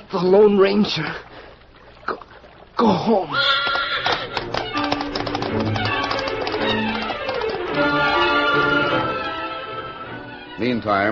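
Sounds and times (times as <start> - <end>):
speech: 0.1 - 1.3, 2.1 - 3.7, 10.6 - 11.1
Dan's horse Victor galloping in and stopping: 3.4 - 8.8.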